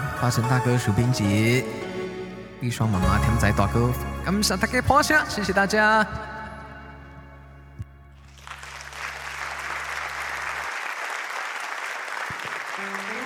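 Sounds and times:
speech: 0.2 - 1.9, 2.6 - 6.3
audience applause: 8.2 - 13.2.

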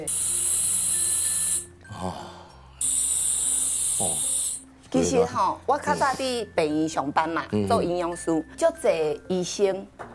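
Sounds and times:
speech: 0.0 - 0.3, 2.0 - 2.2, 4.0 - 4.3, 4.9 - 10.0
portable oxygen canister spraying: 0.0 - 1.7, 2.8 - 4.6.

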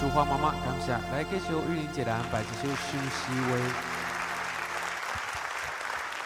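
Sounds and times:
speech: 0.1 - 4.0
audience applause at a sing-along gathering: 2.1 - 6.2.

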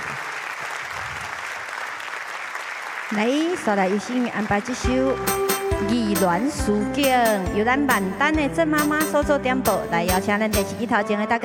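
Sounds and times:
audience clapping: 0.0 - 5.7
speech: 3.1 - 11.4.

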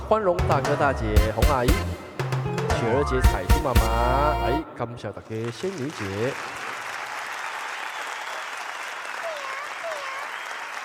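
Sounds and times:
speech: 0.1 - 2.0, 2.8 - 6.6
warm audience applause: 5.3 - 10.8.

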